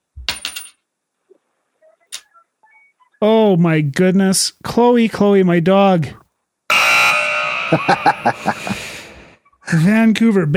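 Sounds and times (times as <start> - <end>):
coin clattering on a hard surface: 0.3 - 0.8
speech: 3.2 - 6.2, 7.7 - 8.8, 9.7 - 10.5
laughter: 7.7 - 9.7.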